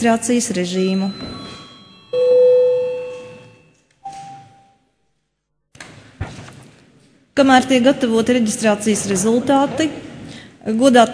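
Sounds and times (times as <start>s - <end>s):
speech: 0.0s - 1.5s, 7.4s - 11.1s
parliament session bell ringing: 0.8s - 4.9s.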